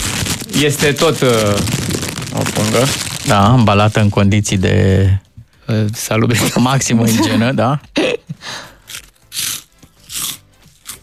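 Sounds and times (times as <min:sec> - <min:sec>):
seeds being bitten and chewed: 0:00.0 - 0:03.7, 0:08.9 - 0:11.0
speech: 0:00.6 - 0:08.7.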